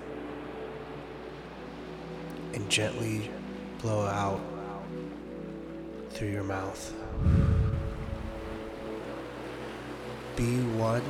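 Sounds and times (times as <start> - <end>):
faint sustained humming tones: 0.0 - 11.0
ocean waves: 0.0 - 11.0
speech: 2.6 - 4.6, 6.2 - 7.5, 10.4 - 11.0.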